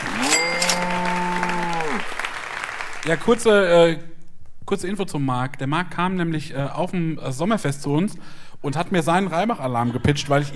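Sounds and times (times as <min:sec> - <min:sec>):
audience applause: 0:00.0 - 0:03.6
speech: 0:03.1 - 0:04.1, 0:04.7 - 0:10.5.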